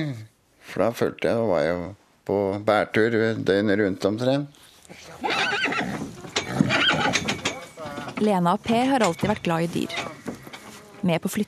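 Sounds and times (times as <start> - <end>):
speech: 0.0 - 5.6, 8.2 - 10.1, 11.0 - 11.4
horse neighing: 5.2 - 8.1.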